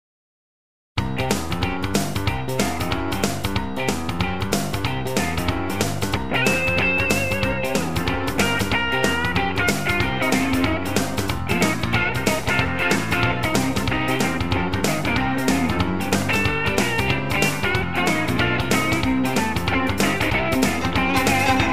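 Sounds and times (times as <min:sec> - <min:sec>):
rock and roll groove: 0:01.0 - 0:21.7.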